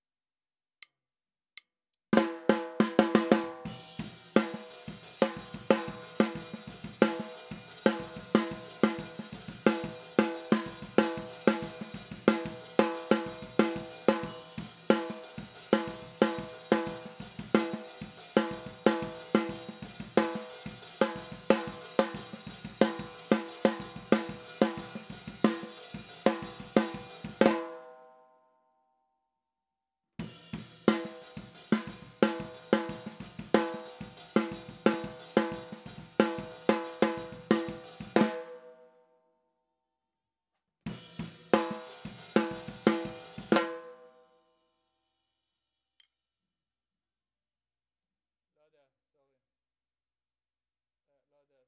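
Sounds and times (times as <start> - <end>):
snare drum: 2.2 - 27.8, 30.2 - 38.7, 40.9 - 44.0.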